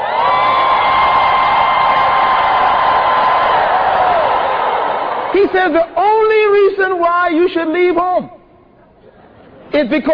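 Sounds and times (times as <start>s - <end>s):
crowd screaming: 0.0s - 5.4s
speech: 5.4s - 8.3s, 9.8s - 10.1s.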